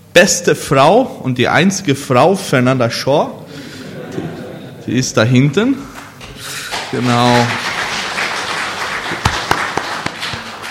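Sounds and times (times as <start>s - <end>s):
speech: 0.2s - 3.4s, 4.9s - 5.9s, 6.9s - 7.7s
laughter: 3.5s - 5.2s
audience applause: 6.4s - 10.6s.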